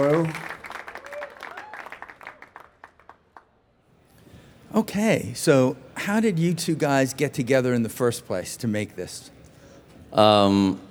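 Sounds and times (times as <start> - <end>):
speech: 0.0 - 0.5, 4.8 - 9.4, 10.1 - 10.8
audience applauding guests onto a stage at an evening event: 0.0 - 3.5.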